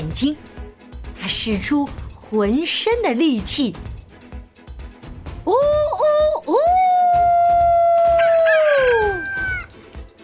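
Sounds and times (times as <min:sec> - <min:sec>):
speech: 0:00.1 - 0:00.6, 0:01.2 - 0:03.9, 0:05.5 - 0:06.8
voice imitating rooster crowing: 0:05.6 - 0:09.7.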